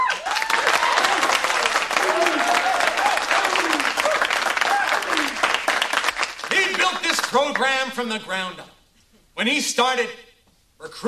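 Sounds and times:
whoops and shouted cheers: 0:00.0 - 0:05.4
large crowd applauding: 0:00.0 - 0:07.9
speech: 0:07.5 - 0:08.7, 0:09.4 - 0:10.2, 0:10.8 - 0:11.0.

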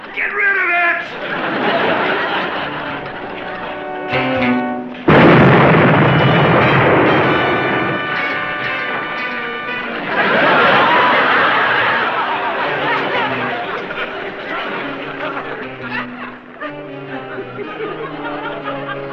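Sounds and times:
laughter: 0:01.0 - 0:04.1, 0:09.7 - 0:19.1
bomb exploding: 0:04.1 - 0:12.7.

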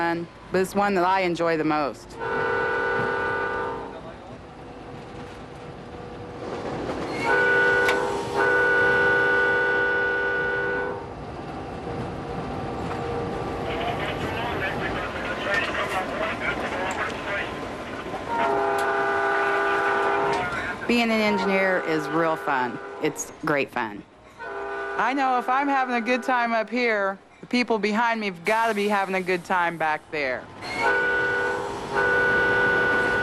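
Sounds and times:
speech: 0:00.0 - 0:03.1, 0:20.9 - 0:24.1, 0:25.0 - 0:31.1
passenger train rolling along the tracks: 0:00.0 - 0:33.2
train horn blasts: 0:02.1 - 0:04.2, 0:07.1 - 0:11.1, 0:18.2 - 0:23.3, 0:24.3 - 0:26.6, 0:30.6 - 0:33.2.

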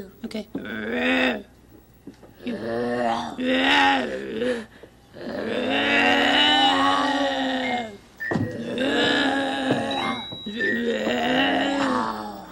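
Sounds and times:
voices imitating bears growling: 0:02.4 - 0:08.0, 0:08.6 - 0:12.4.

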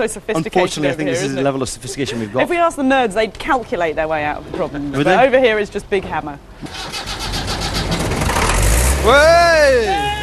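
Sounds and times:
speech: 0:00.0 - 0:07.1, 0:09.0 - 0:10.2
previously seized engine cranking and starting: 0:06.6 - 0:09.1.

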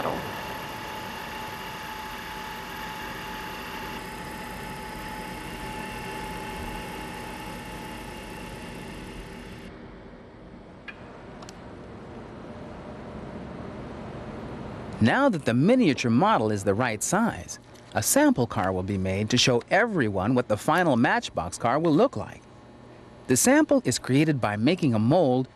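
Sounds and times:
tracing machine carving a miniature model: 0:00.0 - 0:09.7
speech: 0:15.0 - 0:22.5, 0:23.3 - 0:25.5.

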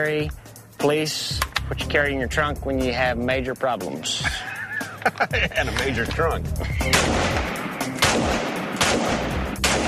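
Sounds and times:
speech: 0:00.0 - 0:09.3
laughter: 0:04.2 - 0:07.1
rifle gunshots: 0:06.8 - 0:09.8.

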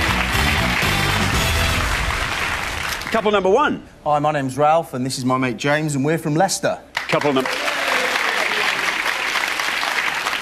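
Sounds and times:
studio audience applause: 0:00.0 - 0:03.4, 0:06.9 - 0:10.3
speech: 0:03.1 - 0:07.7.

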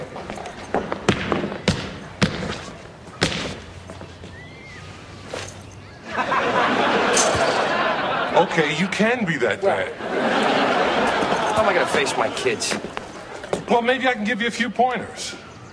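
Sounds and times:
basketball bouncing: 0:00.7 - 0:03.7
laughter: 0:06.0 - 0:13.7
speech: 0:08.4 - 0:10.6, 0:11.6 - 0:13.0, 0:13.7 - 0:15.4.

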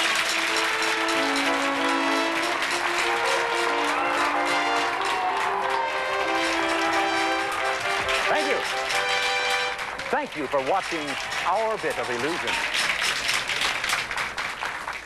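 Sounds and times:
audience applause: 0:00.0 - 0:15.0
speech: 0:10.3 - 0:12.9.

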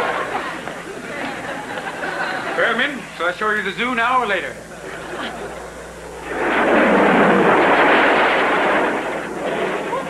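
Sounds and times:
laughter: 0:00.0 - 0:02.9, 0:04.6 - 0:05.9, 0:09.8 - 0:10.0
speech: 0:02.7 - 0:04.7
jet aircraft roaring past: 0:05.0 - 0:10.0.

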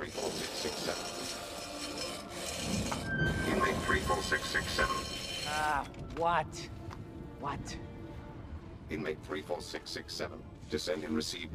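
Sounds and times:
drill cutting into the pod of a charred TIE fighter: 0:00.0 - 0:05.7
speech: 0:05.6 - 0:06.8, 0:07.4 - 0:07.9, 0:08.9 - 0:11.5.

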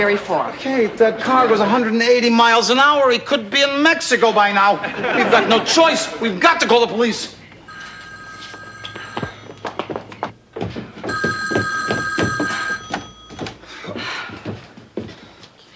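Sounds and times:
speech: 0:00.0 - 0:07.4
laughter: 0:04.6 - 0:06.3
telephone ringing: 0:07.6 - 0:10.3, 0:11.1 - 0:13.7.

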